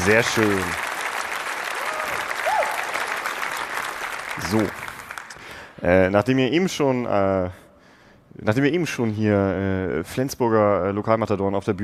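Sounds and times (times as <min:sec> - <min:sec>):
speech: 0:00.0 - 0:00.9, 0:04.4 - 0:04.8, 0:05.8 - 0:07.6, 0:08.4 - 0:11.8
stage competition audience applause: 0:00.0 - 0:05.7.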